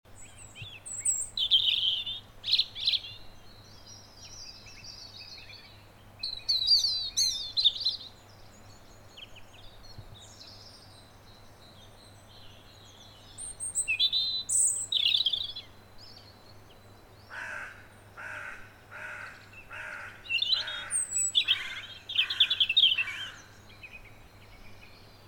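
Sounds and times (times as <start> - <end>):
European robin Erithacus rubecula singing: 0.1 - 25.2.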